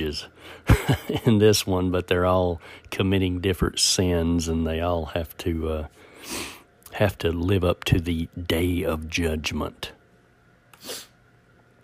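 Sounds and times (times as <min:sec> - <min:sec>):
speech: 0:00.1 - 0:10.0, 0:10.8 - 0:11.1
laughter: 0:00.7 - 0:01.4
person sniffling with a sinus issue: 0:06.1 - 0:06.7, 0:10.8 - 0:11.2.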